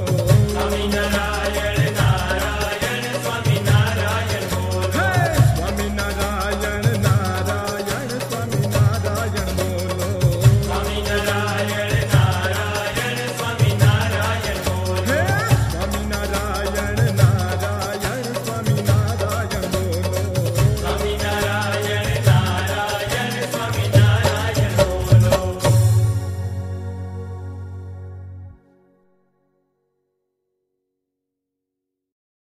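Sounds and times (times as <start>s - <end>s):
devotional chanting: 0.0s - 27.4s.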